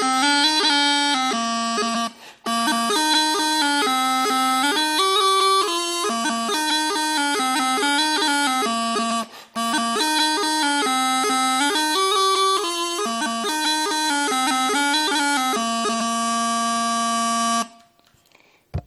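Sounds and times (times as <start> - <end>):
Breton folk dance tune: 0.0 - 17.8.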